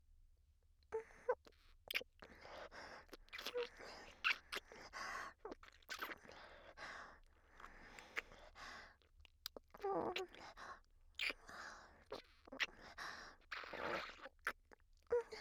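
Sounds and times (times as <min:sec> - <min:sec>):
intense oral sex sounds: 0:01.0 - 0:06.8, 0:09.5 - 0:10.6, 0:11.2 - 0:15.3
deep kissing: 0:03.3 - 0:04.7, 0:05.9 - 0:06.4, 0:09.8 - 0:10.4, 0:11.2 - 0:11.4, 0:13.5 - 0:14.3.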